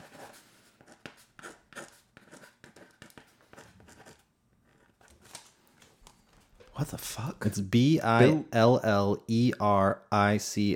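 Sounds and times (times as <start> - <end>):
pen scratching across paper while handwriting: 0.0 - 5.0
speech: 6.8 - 10.7.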